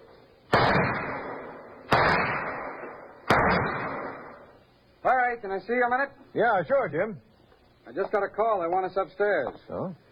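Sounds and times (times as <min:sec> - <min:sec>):
pistol shots at an indoor firing range: 0:00.5 - 0:04.5
speech: 0:05.4 - 0:07.3, 0:07.9 - 0:10.0.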